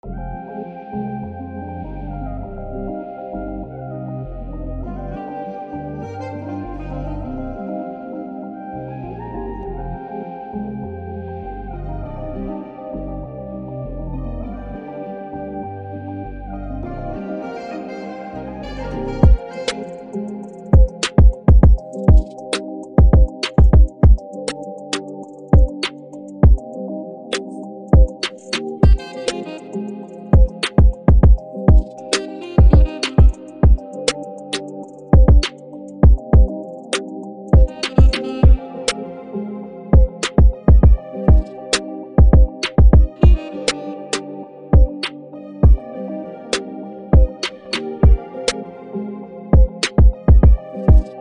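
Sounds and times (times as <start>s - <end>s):
music beat: 18.6s - 26.7s, 27.3s - 39.0s, 40.0s - 44.2s, 44.8s - 45.8s, 47.2s - 48.6s, 49.6s - 51.1s.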